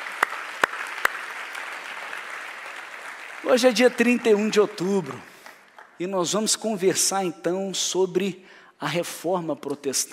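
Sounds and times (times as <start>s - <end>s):
audience applause: 0.0s - 5.9s
speech: 3.4s - 5.3s, 6.0s - 10.1s.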